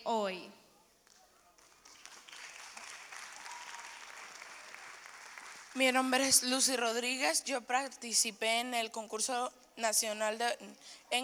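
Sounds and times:
speech: 0.0 - 0.6, 5.8 - 11.2
audience applause: 1.6 - 5.8.

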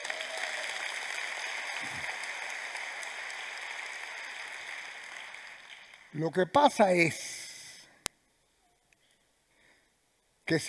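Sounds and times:
audience applause: 0.0 - 6.2
speech: 6.2 - 7.3, 10.5 - 10.6.

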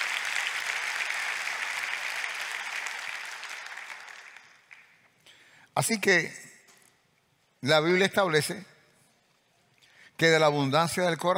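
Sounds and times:
audience applause: 0.0 - 5.0
speech: 5.8 - 6.4, 7.6 - 8.7, 10.2 - 11.3.

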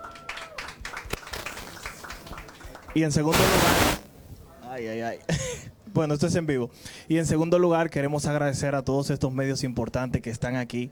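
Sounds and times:
scattered audience applause at a live press event: 0.0 - 4.0
speech: 2.9 - 4.0, 4.8 - 10.8.

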